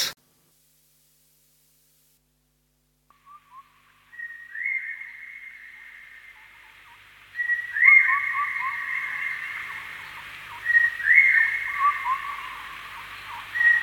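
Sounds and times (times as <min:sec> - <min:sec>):
birds squawking and chirping: 0:04.1 - 0:13.7.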